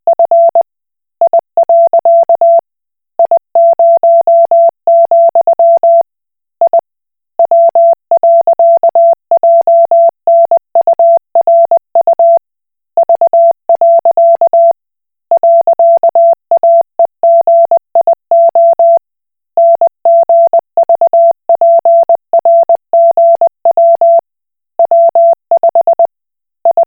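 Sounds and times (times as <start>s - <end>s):
Koch Morse code beeps: 0.1s - 0.6s, 1.2s - 2.6s, 3.2s - 6.0s, 7.4s - 12.4s, 13.0s - 14.8s, 15.4s - 19.0s, 19.6s - 24.2s, 24.8s - 26.1s, 26.7s - 26.8s.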